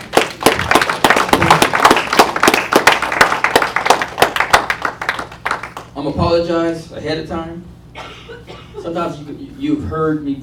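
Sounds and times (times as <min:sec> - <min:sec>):
audience clapping hands: 0:00.0 - 0:06.0
speech: 0:06.0 - 0:07.8, 0:08.8 - 0:10.4.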